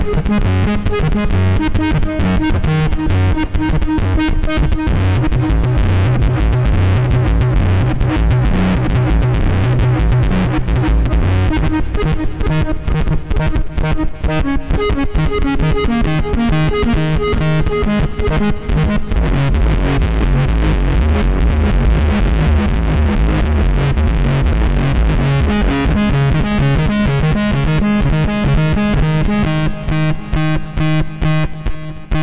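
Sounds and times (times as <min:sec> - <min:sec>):
noise dance improvisation: 0:00.0 - 0:32.2.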